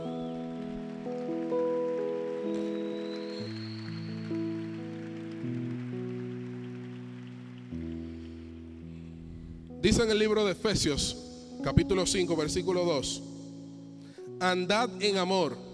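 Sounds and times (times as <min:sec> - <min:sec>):
audience applauding: 0:00.0 - 0:08.8
speech: 0:09.8 - 0:13.3, 0:14.4 - 0:15.7.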